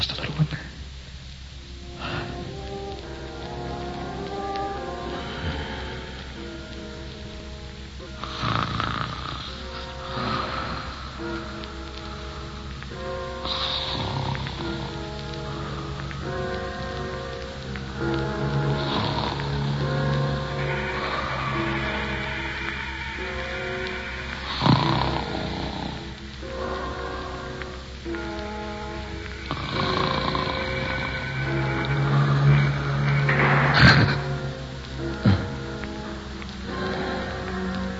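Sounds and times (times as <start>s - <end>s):
steady hiss: 0.0s - 37.9s
person snoring during a catnap: 4.8s - 7.1s, 8.1s - 11.7s, 13.0s - 16.0s, 18.3s - 27.4s, 29.4s - 35.8s.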